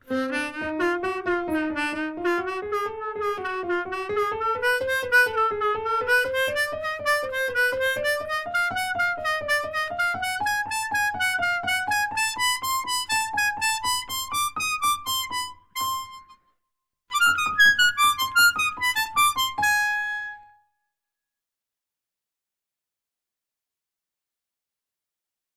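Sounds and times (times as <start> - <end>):
piano: 0.0 - 16.4, 17.1 - 20.6.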